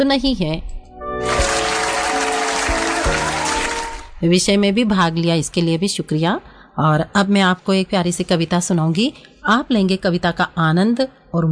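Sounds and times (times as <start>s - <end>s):
speech: 0.0s - 0.8s, 4.2s - 11.5s
crowd applause: 1.2s - 4.2s.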